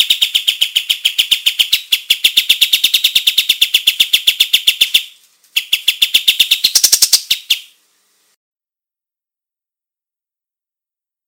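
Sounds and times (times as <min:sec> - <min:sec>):
olive-winged bulbul song of very rapid high chirps: 0:00.0 - 0:07.8.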